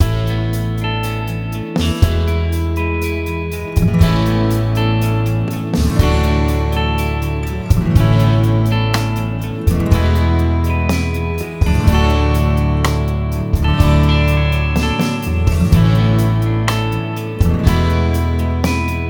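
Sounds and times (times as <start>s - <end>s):
acoustic guitar: 0.0s - 19.0s.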